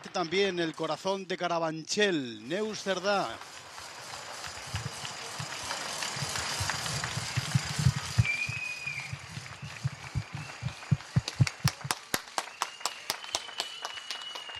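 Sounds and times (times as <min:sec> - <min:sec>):
applause from balconies for health workers: 0:00.0 - 0:01.0, 0:02.7 - 0:14.5
speech: 0:00.0 - 0:03.6
people cheering: 0:02.4 - 0:14.5
whistle: 0:04.0 - 0:14.5.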